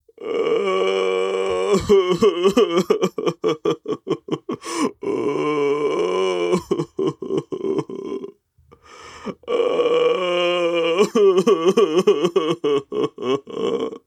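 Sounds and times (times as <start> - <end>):
person crying: 0.2 - 8.3, 9.5 - 14.0.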